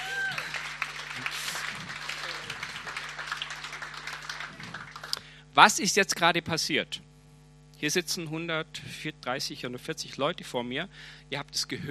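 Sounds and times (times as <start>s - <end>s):
audience applause: 0.0s - 5.2s
speech: 5.6s - 7.0s, 7.8s - 11.8s.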